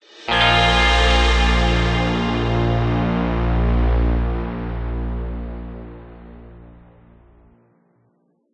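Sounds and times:
positive music stinger: 0.2s - 6.8s.

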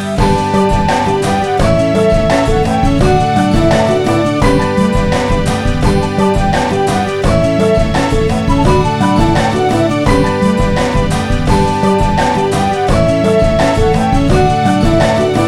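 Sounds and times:
menu music: 0.2s - 15.4s.

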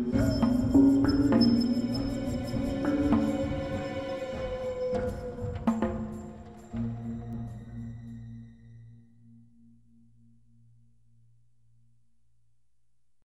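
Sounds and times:
swamp ambience: 0.0s - 8.8s.

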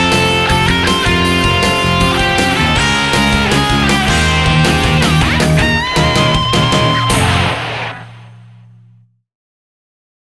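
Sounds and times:
karaoke singing: 0.0s - 7.9s.

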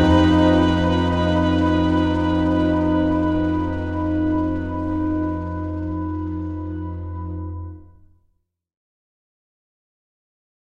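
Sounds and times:
game menu music: 0.0s - 8.0s.

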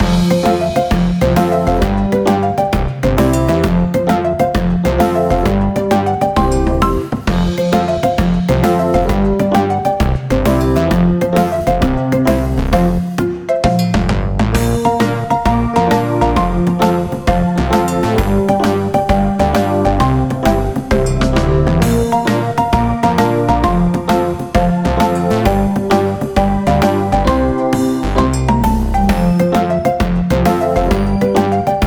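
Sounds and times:
world map music loop: 0.0s - 31.8s.

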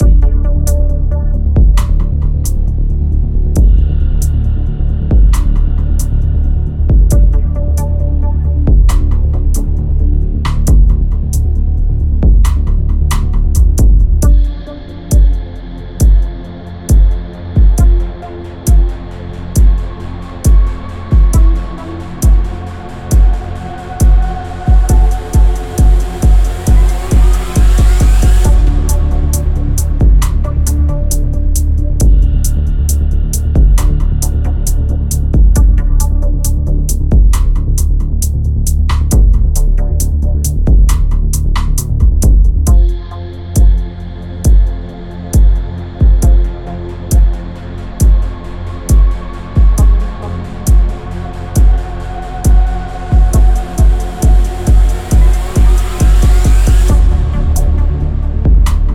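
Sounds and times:
tense music: 0.0s - 58.9s.

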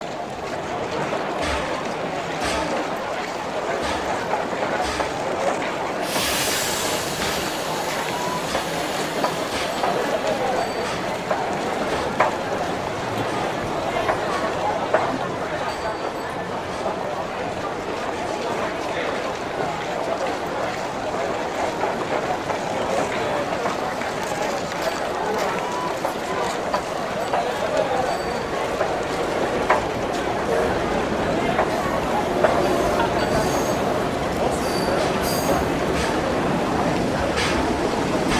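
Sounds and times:
large industrial city ambience: 0.0s - 38.3s.

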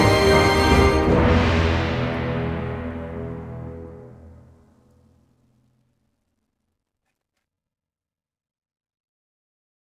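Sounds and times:
musical sting: 0.0s - 4.7s.

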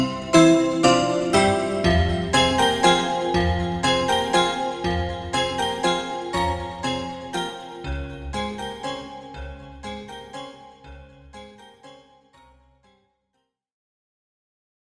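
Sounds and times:
zither: 0.0s - 11.3s.

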